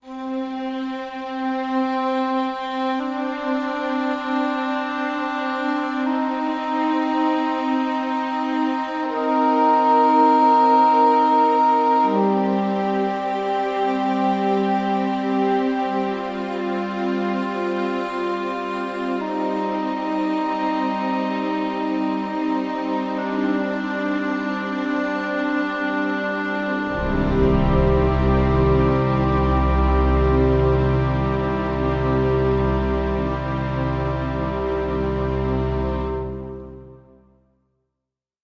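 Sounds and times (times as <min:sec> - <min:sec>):
woodwinds: 0:00.0 - 0:37.2
strings: 0:00.0 - 0:37.3.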